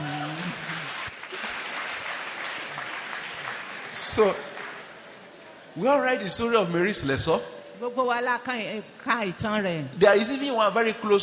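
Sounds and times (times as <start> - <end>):
audience applause: 0.0 - 5.1
speech: 4.0 - 4.5, 5.8 - 11.2.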